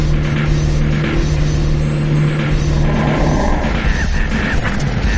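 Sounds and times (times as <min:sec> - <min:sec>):
engine rumble: 0:00.0 - 0:05.0
video game female zombies screeching like monkeys: 0:02.8 - 0:04.1.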